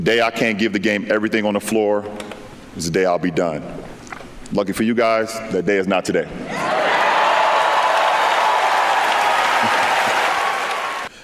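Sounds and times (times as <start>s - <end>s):
speech: 0.0s - 3.8s, 4.5s - 6.7s
crowd applause: 6.5s - 11.2s.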